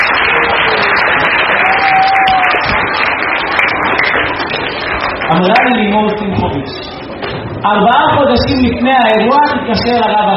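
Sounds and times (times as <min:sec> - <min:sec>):
audience applause: 0:00.0 - 0:06.2
speech: 0:05.3 - 0:06.9, 0:07.6 - 0:10.3.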